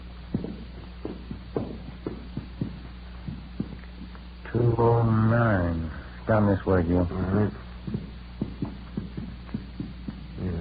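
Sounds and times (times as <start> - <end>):
footsteps climbing a hotel's stairs: 0.0 - 4.6, 7.1 - 10.5
low hum: 0.0 - 10.5
speech: 4.7 - 7.6.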